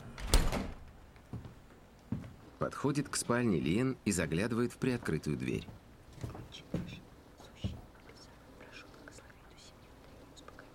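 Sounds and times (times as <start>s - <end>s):
refrigerator door opening: 0.0s - 0.9s
speech: 2.6s - 6.7s.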